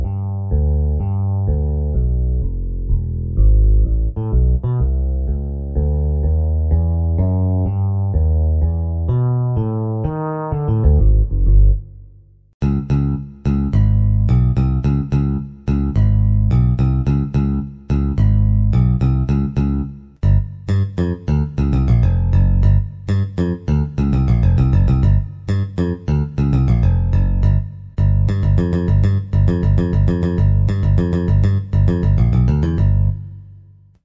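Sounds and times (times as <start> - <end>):
bass guitar: 0.0 - 34.0.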